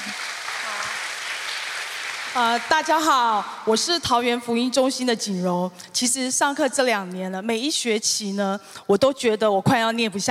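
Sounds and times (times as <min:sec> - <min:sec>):
audience clapping to welcome a speaker at a church gospel centre gathering: 0:00.0 - 0:03.2
speech: 0:02.3 - 0:10.2.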